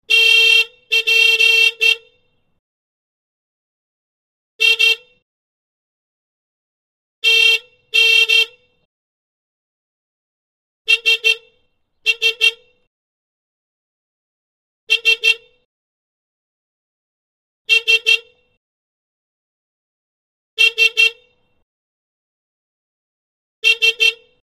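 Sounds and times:
Citroen Deux Chevaux horn blasts: 0:00.0 - 0:02.4, 0:04.6 - 0:05.2, 0:07.2 - 0:08.9, 0:10.9 - 0:12.9, 0:14.9 - 0:15.7, 0:17.7 - 0:18.6, 0:20.6 - 0:21.6, 0:23.6 - 0:24.4.

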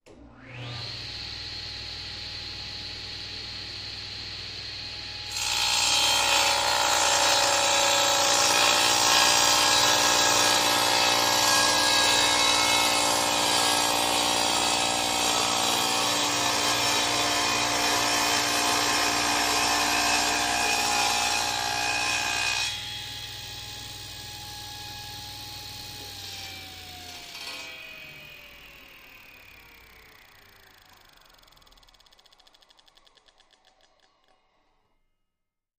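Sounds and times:
table saw: 0:00.1 - 0:34.8.

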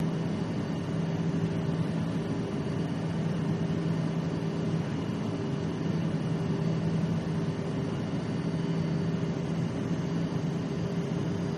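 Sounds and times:
Lear Jet interior: 0:00.0 - 0:11.5.

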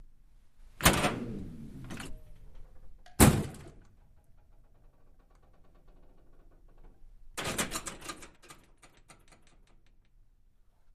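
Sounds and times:
wooden door push bar: 0:00.8 - 0:02.4, 0:07.4 - 0:09.9.

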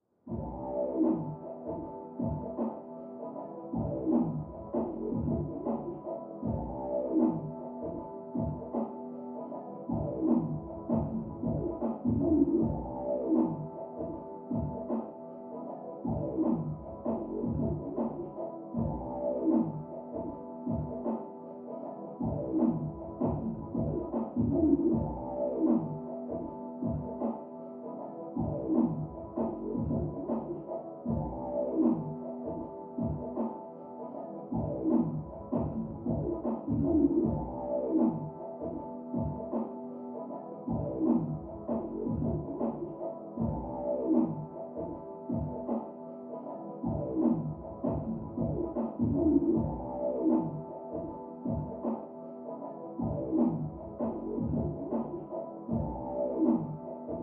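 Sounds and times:
hip hop beat: 0:00.3 - 0:57.2.

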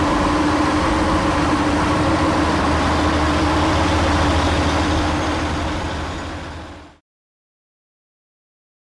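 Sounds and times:
diesel truck engine recorded onboard: 0:00.0 - 0:07.0.

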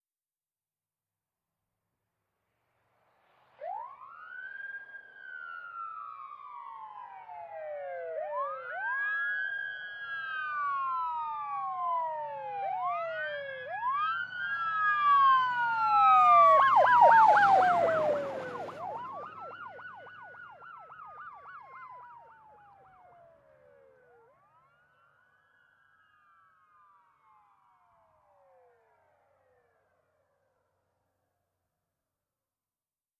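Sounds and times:
ambulance passing fast: 0:03.6 - 0:26.4.

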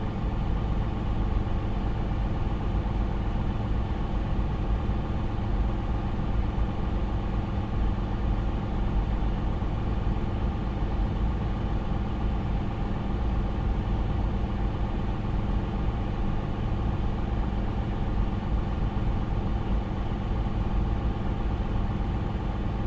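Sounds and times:
industrial ventilation fan in a factory: 0:00.0 - 0:22.8.

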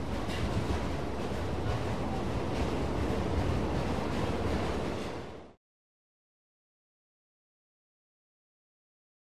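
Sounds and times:
old subway train interior: 0:00.0 - 0:05.6.

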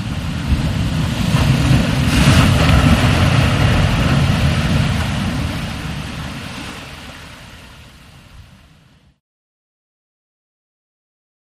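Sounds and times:
steady heavy surf: 0:00.0 - 0:09.2
waves: 0:00.0 - 0:09.2.

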